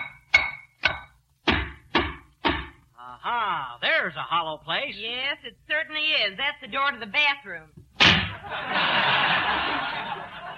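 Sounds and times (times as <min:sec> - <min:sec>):
tapping on walls: 0:00.0 - 0:02.8
speech: 0:03.1 - 0:10.5
laughter: 0:08.3 - 0:10.5.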